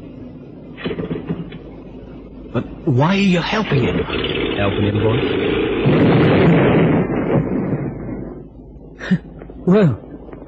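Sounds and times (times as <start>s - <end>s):
speech: 2.5s - 7.5s, 9.1s - 10.0s
boat exploding: 3.7s - 8.4s.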